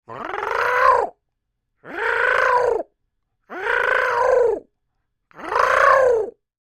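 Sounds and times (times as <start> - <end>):
upset creature bird calls: 0.1 - 1.2, 1.8 - 2.9, 3.5 - 4.6, 5.3 - 6.4.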